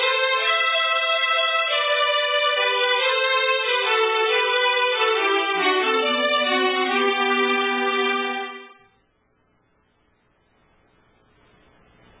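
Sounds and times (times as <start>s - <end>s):
waltz music: 0.0s - 8.9s.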